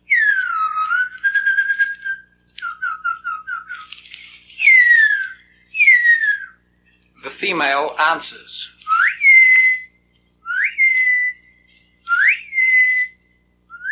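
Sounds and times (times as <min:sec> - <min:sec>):
person whistling imitation of male huia call: 0:00.1 - 0:04.0, 0:04.6 - 0:06.6, 0:08.9 - 0:13.8
speech: 0:07.4 - 0:08.8.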